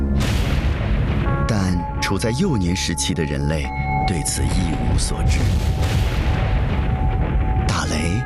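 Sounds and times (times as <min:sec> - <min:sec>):
thunder clap: 0:00.2 - 0:02.0, 0:04.8 - 0:08.2
speech: 0:02.1 - 0:06.1.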